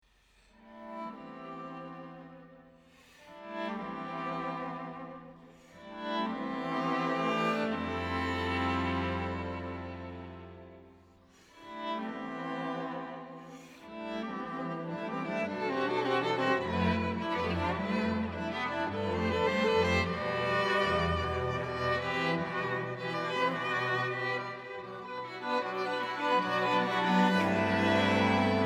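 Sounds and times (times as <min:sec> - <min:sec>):
string quartet: 0:00.5 - 0:28.6.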